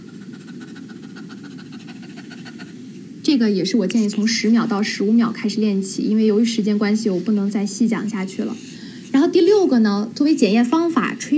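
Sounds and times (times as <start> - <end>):
person imitating a dog's panting: 0.0 - 2.8
speech: 3.3 - 11.3.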